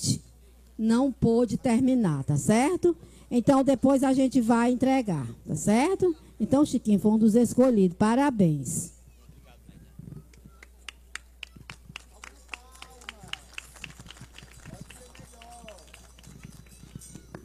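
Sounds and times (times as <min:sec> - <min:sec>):
speech: 0:00.8 - 0:08.9
people's voices talking and murmuring: 0:09.1 - 0:17.4
scattered hand claps from a small audience: 0:10.3 - 0:17.4.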